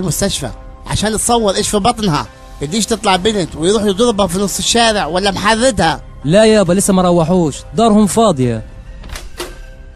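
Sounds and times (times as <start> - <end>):
speech: 0.0 - 8.7
door opening: 9.0 - 9.9.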